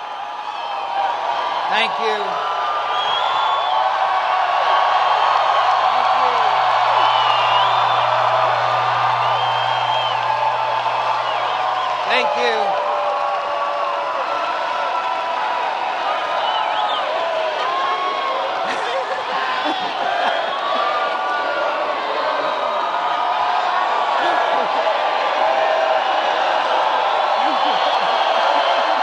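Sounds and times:
crowd cheering: 0:00.0 - 0:29.0
speech: 0:01.7 - 0:02.6
laughter: 0:18.1 - 0:22.7, 0:24.0 - 0:25.5, 0:27.0 - 0:29.0.

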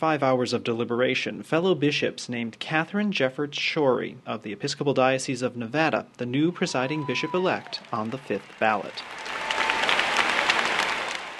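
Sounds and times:
speech: 0:00.0 - 0:09.4
thunderous applause from lay and clergy delegates at a church general convention: 0:06.6 - 0:11.3.

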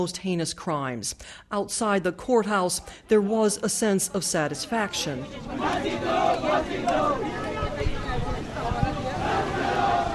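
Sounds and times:
speech: 0:00.0 - 0:07.5
small crowd chanting outside courthouse: 0:02.7 - 0:10.1.

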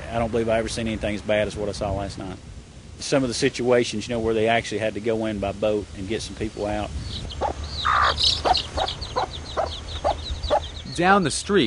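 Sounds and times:
speech: 0:00.1 - 0:09.3, 0:11.0 - 0:11.6
chicks peeping: 0:06.1 - 0:11.0
chickens clucking: 0:06.5 - 0:10.9.

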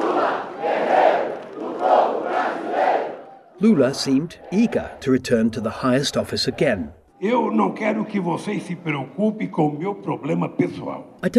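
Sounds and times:
large crowd chanting and cheering at a Workers' Party rally in Brazil's capital: 0:00.0 - 0:05.7
speech: 0:03.6 - 0:11.3.

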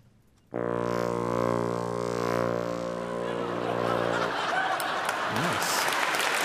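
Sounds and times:
speech: 0:00.5 - 0:01.0
wind instrument imitating a lightsaber hum: 0:00.5 - 0:04.4
laughter: 0:03.1 - 0:06.3.

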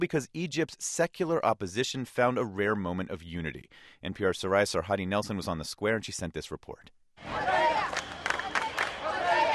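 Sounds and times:
speech: 0:00.0 - 0:07.6
protest crowd shouting slogans: 0:07.2 - 0:09.5
sharp claps or bangs: 0:07.8 - 0:09.0.

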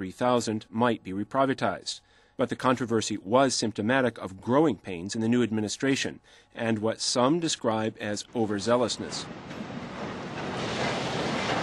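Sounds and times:
speech: 0:00.0 - 0:09.7
wind and water at the port of Odessa on the Black Sea: 0:08.8 - 0:11.6.

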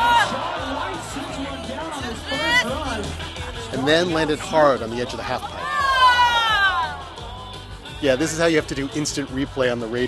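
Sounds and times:
crowd reacting to snowboarder's fall: 0:00.0 - 0:03.3, 0:05.4 - 0:07.7
speech: 0:03.8 - 0:05.6, 0:08.0 - 0:10.0.

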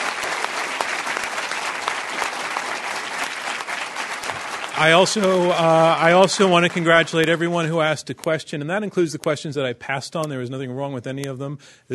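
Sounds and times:
audience applause: 0:00.0 - 0:07.7
speech: 0:04.8 - 0:11.9.

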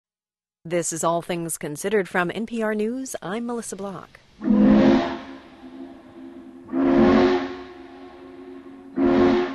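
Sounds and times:
speech: 0:00.6 - 0:04.5
steam train whistle blasts: 0:04.4 - 0:09.5.

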